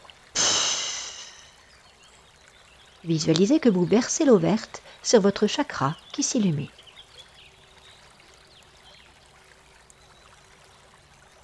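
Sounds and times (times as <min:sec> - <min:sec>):
forceful breath out during a guided chakra meditation: 0:00.4 - 0:01.6
speech: 0:03.0 - 0:06.8.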